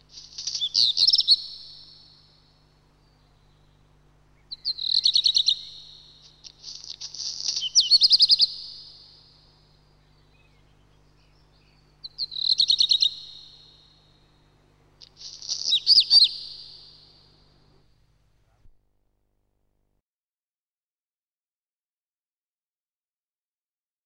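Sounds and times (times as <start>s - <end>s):
black redstart singing: 0.0s - 17.8s.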